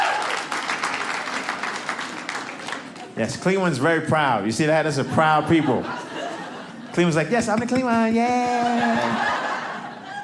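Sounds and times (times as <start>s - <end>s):
audience applause at a stand-up comedy show: 0.0s - 3.2s
speech: 3.2s - 6.0s, 6.9s - 9.4s
laughter: 4.6s - 10.2s.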